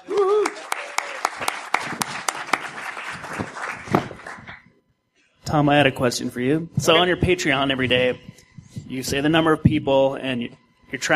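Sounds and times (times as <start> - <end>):
short vocal whoop: 0.0 - 1.2
audience applause: 0.0 - 4.6
speech: 5.5 - 8.3, 8.9 - 11.1.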